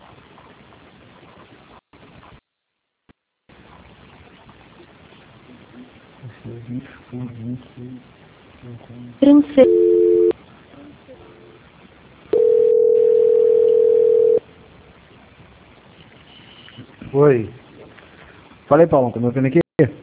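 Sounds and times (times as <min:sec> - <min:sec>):
speech: 0:06.5 - 0:10.0, 0:17.2 - 0:17.6, 0:18.7 - 0:20.0
telephone tones: 0:09.6 - 0:10.3, 0:12.3 - 0:14.4
telephone dial tone: 0:12.4 - 0:14.4.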